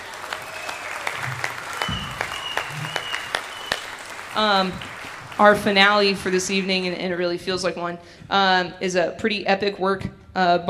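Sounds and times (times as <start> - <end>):
audience applause for a student band: 0.0 - 7.2
speech: 4.4 - 10.6.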